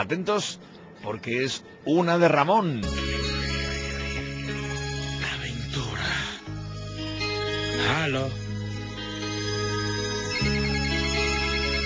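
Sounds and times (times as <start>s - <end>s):
speech: 0.0s - 3.4s, 7.8s - 8.4s
telephone ringtone: 2.8s - 11.8s.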